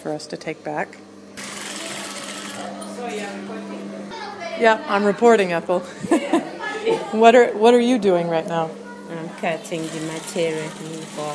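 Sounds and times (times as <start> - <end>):
speech: 0.0 - 1.1, 2.6 - 11.3
industrial sewing machine stitching skirts: 1.4 - 2.7, 9.6 - 11.3
laughter: 5.8 - 7.2.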